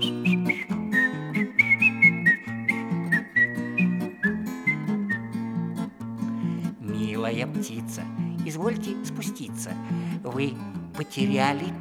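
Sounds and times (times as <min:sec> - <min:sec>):
whistled melody said to come from a rubber hedgehog: 0:00.0 - 0:05.9
speech: 0:07.3 - 0:11.7.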